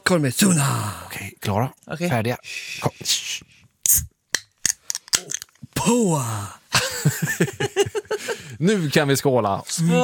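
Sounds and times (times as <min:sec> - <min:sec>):
speech: 0:00.1 - 0:03.3, 0:05.8 - 0:10.0
raspberry soda being opened: 0:03.8 - 0:05.6
laughter: 0:06.8 - 0:08.5.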